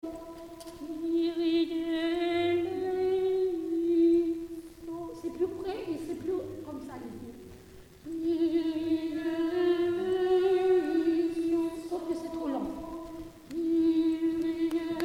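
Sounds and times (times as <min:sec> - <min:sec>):
ensemble singing a kyrie: 0:00.0 - 0:15.0.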